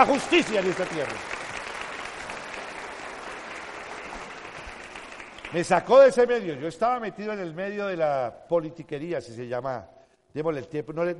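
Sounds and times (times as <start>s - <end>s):
speech: 0.0s - 1.4s, 5.5s - 11.1s
audience applause: 0.0s - 5.9s.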